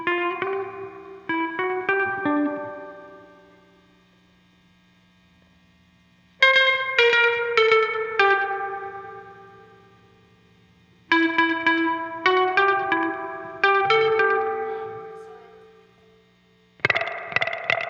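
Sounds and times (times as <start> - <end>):
guitar overdub: 0.0 - 17.8.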